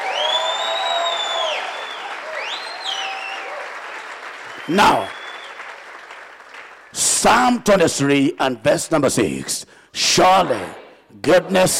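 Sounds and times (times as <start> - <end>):
people cheering: 0.0 - 6.7
audience clapping in celebration: 0.0 - 7.8
speech: 4.7 - 5.2, 7.0 - 11.7.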